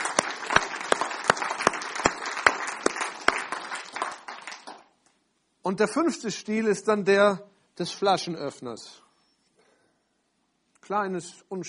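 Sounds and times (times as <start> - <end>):
audience applause: 0.0 - 5.0
speech: 5.7 - 9.0, 10.9 - 11.6.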